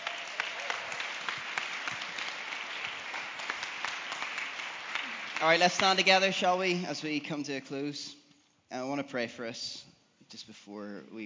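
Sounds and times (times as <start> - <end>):
audience applause: 0.0 - 6.2
speech: 5.4 - 11.2.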